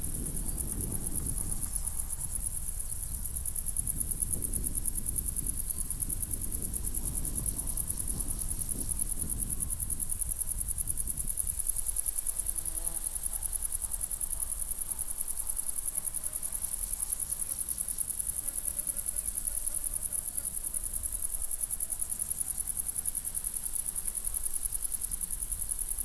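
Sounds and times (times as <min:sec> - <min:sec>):
low rumbling wind gusts: 0:00.0 - 0:11.8
crickets chirring in a windy meadow: 0:00.0 - 0:26.0.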